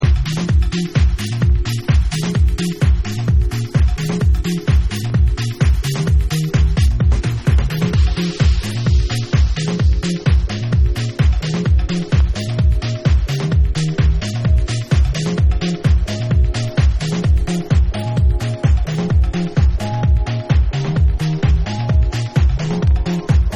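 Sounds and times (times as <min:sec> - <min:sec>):
dub mix: 0:00.0 - 0:23.5.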